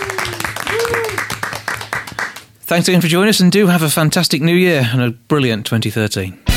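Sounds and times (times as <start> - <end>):
audience applause: 0.0 - 2.5
speech: 2.7 - 6.4.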